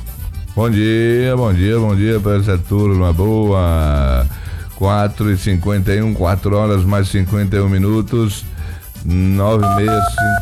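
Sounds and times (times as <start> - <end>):
speech: 0.6 - 10.4
telephone dialing tones placing a radio call-in: 9.6 - 10.4.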